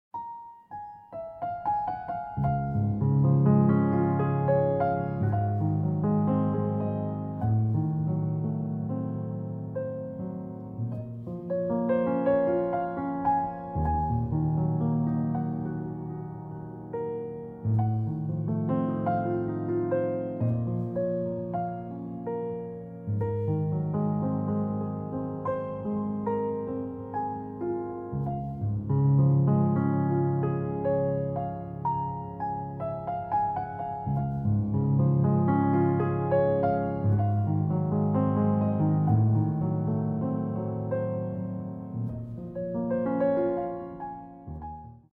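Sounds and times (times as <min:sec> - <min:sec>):
solo piano: 0:00.1 - 0:45.1.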